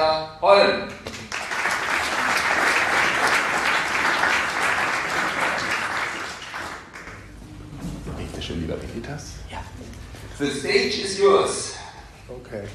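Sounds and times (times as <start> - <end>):
speech: 0.0 - 1.2, 10.4 - 11.7, 12.3 - 12.7
audience applause: 1.2 - 7.4.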